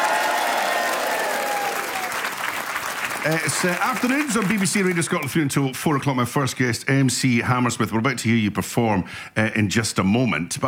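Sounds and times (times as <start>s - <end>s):
live audience applauding: 0.0s - 5.3s
speech: 3.2s - 10.6s.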